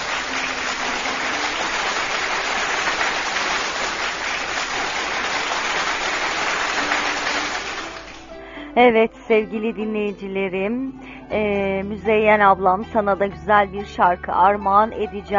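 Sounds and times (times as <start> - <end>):
applause: 0.0 - 8.4
speech: 8.8 - 15.3.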